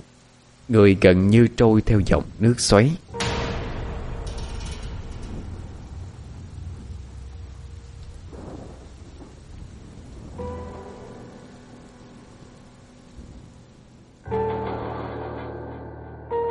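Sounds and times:
speech: 0:00.7 - 0:03.1
repeated thunderclaps during a storm: 0:03.1 - 0:15.5.

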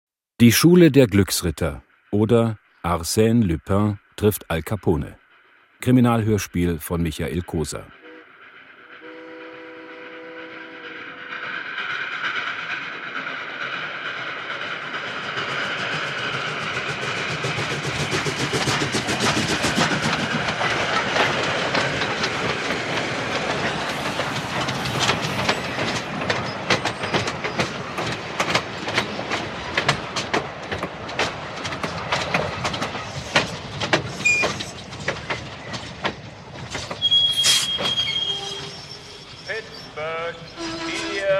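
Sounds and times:
speech: 0:00.4 - 0:05.2, 0:05.8 - 0:08.0
Pennsylvania Special passenger train rumbling into a station: 0:00.4 - 0:41.3
train wheels clickety-clack: 0:11.2 - 0:38.7.

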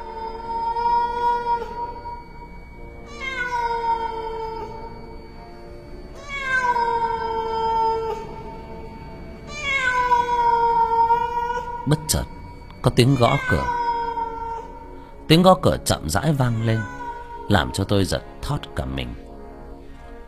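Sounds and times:
cat yowling mournfully at night: 0:00.0 - 0:05.4, 0:06.1 - 0:15.2, 0:16.2 - 0:17.8
speech: 0:12.8 - 0:13.8, 0:15.3 - 0:19.2.

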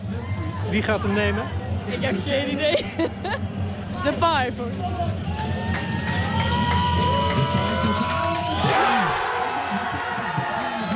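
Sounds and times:
packed terrace crowd of Dutch fans cheering a goal: 0:00.0 - 0:10.9
speech: 0:00.6 - 0:05.3
laughter: 0:01.9 - 0:04.3, 0:07.9 - 0:10.9
fans shouting: 0:05.2 - 0:10.9.

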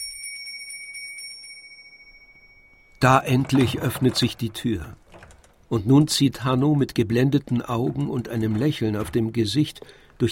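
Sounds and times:
small silver bell rung by hand: 0:00.0 - 0:03.1
speech: 0:03.0 - 0:05.0, 0:05.7 - 0:10.3.

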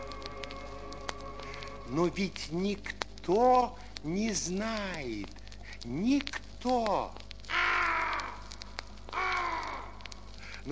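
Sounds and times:
faint low hum: 0:00.0 - 0:10.7
speech: 0:01.9 - 0:07.2
black raven cawing on a branch: 0:07.4 - 0:10.6.

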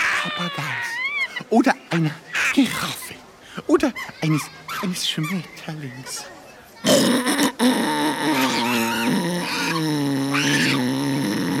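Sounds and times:
orangutan grunting: 0:00.0 - 0:03.2, 0:06.8 - 0:11.5
speech: 0:00.2 - 0:08.7.

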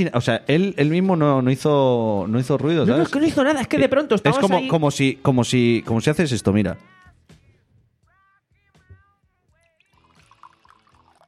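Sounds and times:
speech: 0:00.0 - 0:07.0
water being poured out: 0:09.7 - 0:11.2.

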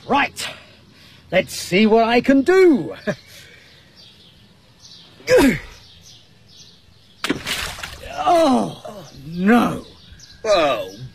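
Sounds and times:
speech: 0:00.0 - 0:00.5, 0:01.3 - 0:03.3, 0:05.3 - 0:05.7, 0:09.4 - 0:09.8
faint bird chirps: 0:00.0 - 0:11.1
object splashing into water: 0:07.2 - 0:08.2.

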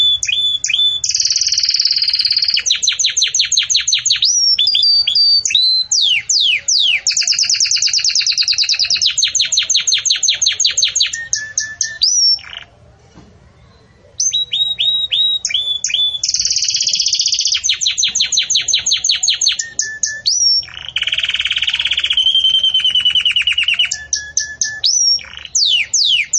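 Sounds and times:
Belgian canary singing: 0:00.0 - 0:26.3.

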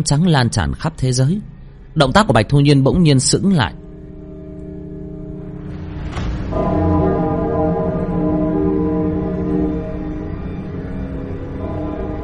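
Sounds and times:
speech: 0:00.0 - 0:03.8
large bell struck: 0:03.7 - 0:12.2.

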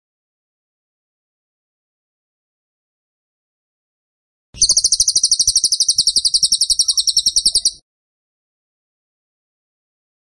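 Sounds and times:
bird shrill trill: 0:04.6 - 0:07.8.

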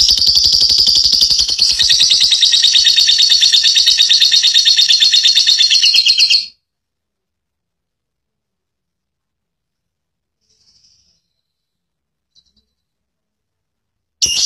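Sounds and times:
lovebird long chattering call: 0:00.0 - 0:06.5.

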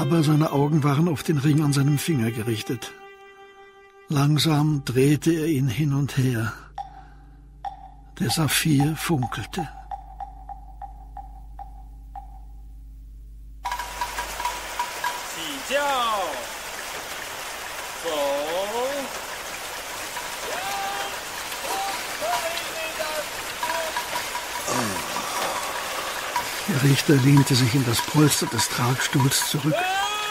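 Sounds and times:
speech: 0:00.1 - 0:03.0, 0:04.1 - 0:06.7, 0:08.2 - 0:09.8, 0:26.7 - 0:30.1
rain falling: 0:13.6 - 0:30.2.

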